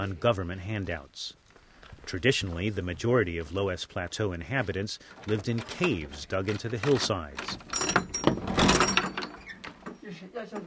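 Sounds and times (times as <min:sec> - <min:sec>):
speech: 0:00.0 - 0:01.4, 0:02.0 - 0:08.0, 0:10.1 - 0:10.6
wooden door of a cave dwelling being unlocked and opened: 0:05.2 - 0:10.6.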